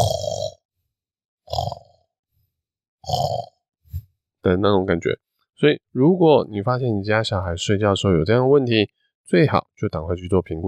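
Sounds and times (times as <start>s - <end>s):
person imitating a child's snoring: 0.0s - 0.6s, 1.5s - 2.0s, 3.0s - 3.6s
speech: 4.4s - 10.6s.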